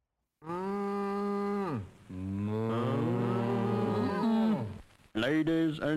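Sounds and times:
cows mooing: 0:00.4 - 0:04.8.

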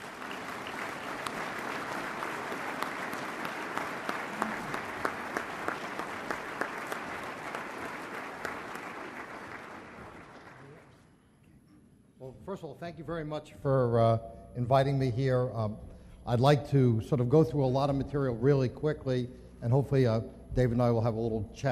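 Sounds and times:
audience applause in Omaha welcoming a speaker: 0:00.0 - 0:11.0
speech: 0:12.5 - 0:21.7.

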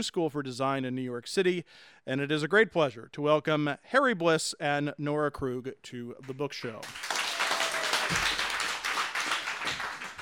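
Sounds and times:
speech: 0:00.0 - 0:07.0, 0:08.1 - 0:08.4
live audience applauding at a bookstore event in Cambridge, New York: 0:06.8 - 0:10.2.

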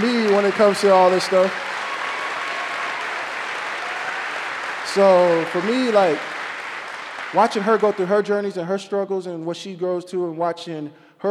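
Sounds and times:
audience applause at a community gathering: 0:00.0 - 0:08.5
speech: 0:00.4 - 0:01.7, 0:05.0 - 0:06.3, 0:07.3 - 0:11.2.

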